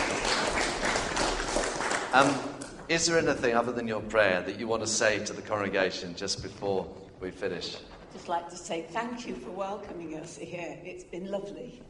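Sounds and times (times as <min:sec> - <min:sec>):
church congregation applauding: 0:00.0 - 0:03.8
speech: 0:02.1 - 0:11.8.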